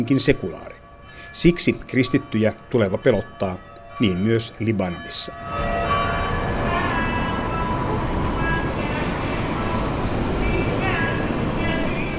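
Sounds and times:
speech: 0.0s - 5.8s
city street traffic noise in Beirut: 5.4s - 12.1s.

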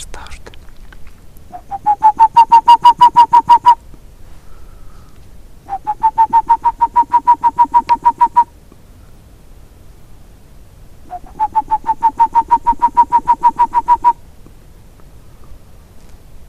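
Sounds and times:
person whistling imitation of boreal owl call: 1.5s - 3.8s, 5.7s - 8.5s, 11.1s - 14.2s.

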